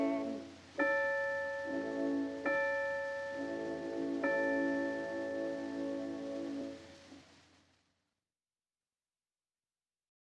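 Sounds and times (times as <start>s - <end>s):
evening church bells ringing: 0.2s - 6.8s.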